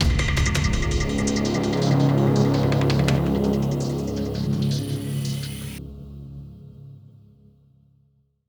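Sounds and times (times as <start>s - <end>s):
dramatic mood music: 0.0s - 5.8s.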